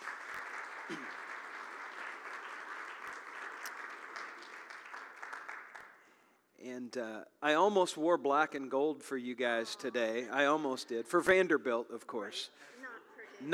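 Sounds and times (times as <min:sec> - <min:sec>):
audience applause: 0:00.0 - 0:06.0
speech: 0:06.6 - 0:12.8, 0:13.4 - 0:13.5.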